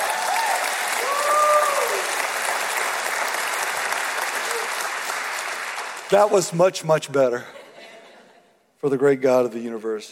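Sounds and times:
faint cheers and whoops: 0.0s - 2.4s
audience applause: 0.0s - 6.6s
speech: 6.1s - 7.6s, 8.8s - 10.1s.

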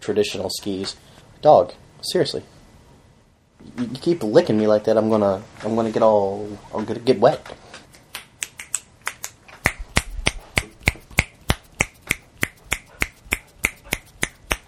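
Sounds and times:
speech: 0.0s - 2.6s, 3.6s - 7.6s
finger snapping: 7.9s - 14.6s.

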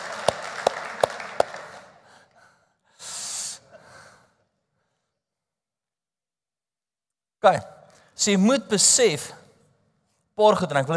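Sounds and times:
audience clapping hands: 0.0s - 2.3s
speech: 7.4s - 9.4s, 10.4s - 10.9s.

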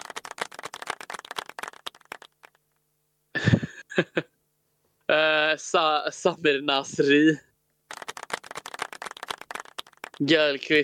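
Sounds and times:
applause: 0.0s - 2.6s, 7.9s - 10.2s
speech: 4.0s - 4.3s, 5.1s - 7.5s, 10.2s - 10.8s.

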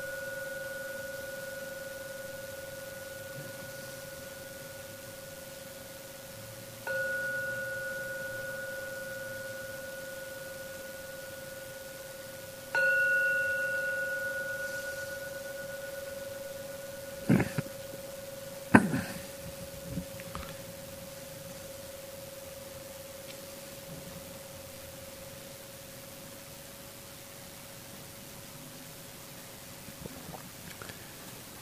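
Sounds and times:
meditation gong ringing: 0.0s - 23.0s.

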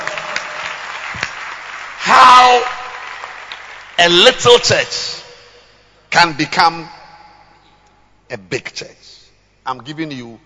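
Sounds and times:
audience clapping hands: 0.0s - 4.8s
speech: 2.4s - 2.8s, 4.0s - 5.2s, 6.1s - 7.0s, 8.3s - 10.4s.

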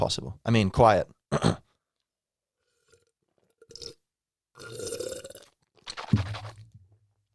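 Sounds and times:
speech: 0.0s - 1.6s
sipping and swallowing water: 2.6s - 4.0s, 4.6s - 6.8s.

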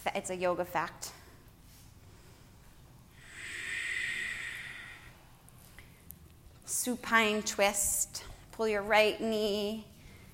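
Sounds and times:
speech: 0.1s - 1.1s, 6.8s - 9.9s
Ujjayi yoga breathing through the nose: 3.2s - 5.9s.

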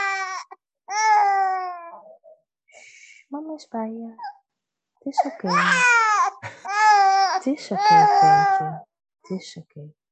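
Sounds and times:
baby crying loudly: 0.0s - 2.0s, 5.2s - 8.7s
speech: 3.6s - 4.3s, 5.0s - 6.0s, 7.4s - 10.0s.

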